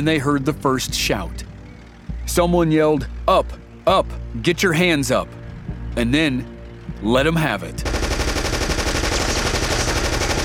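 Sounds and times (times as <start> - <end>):
speech: 0.0 - 1.5, 2.3 - 5.4, 6.0 - 8.0
machine gun fire: 7.8 - 10.4.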